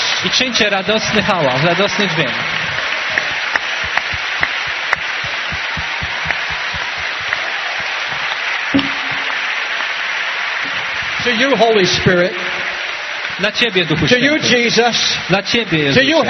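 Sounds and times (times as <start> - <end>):
crowd applause and noise: 0.0 - 16.2
speech: 0.2 - 2.6, 11.2 - 12.6, 13.4 - 16.2
audience clapping hands in a rhythmic beat: 2.0 - 11.6.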